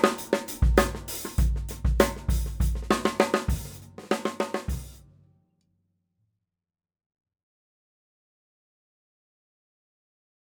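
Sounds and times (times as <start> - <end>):
Craviotto 6.5 inch snare drum played lightly: 0.0 - 5.0.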